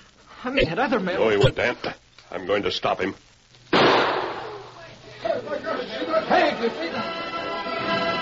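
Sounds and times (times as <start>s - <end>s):
speech: 0.4s - 3.3s, 5.3s - 8.1s
gunshot: 3.7s - 4.6s.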